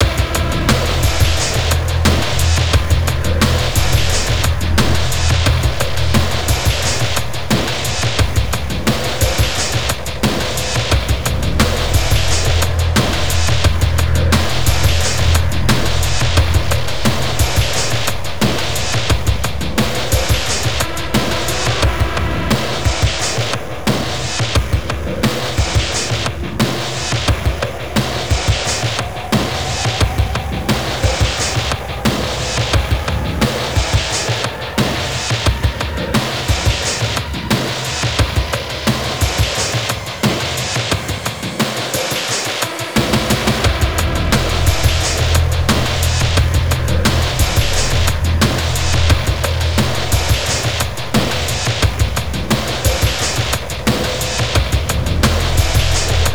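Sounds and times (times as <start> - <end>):
industrial sound: 0.0 - 56.3.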